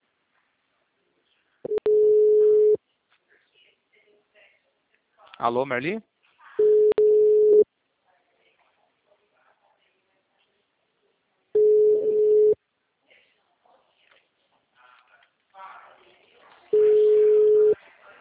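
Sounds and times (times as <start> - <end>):
phone busy tone after a dropped call: 1.7 - 2.8, 6.6 - 7.6, 11.6 - 12.6, 16.8 - 17.8
speech: 5.4 - 6.1.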